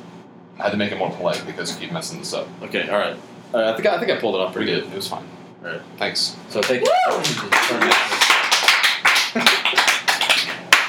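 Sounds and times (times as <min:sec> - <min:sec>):
speech: 0:00.6 - 0:08.2
audience applause: 0:06.8 - 0:10.8.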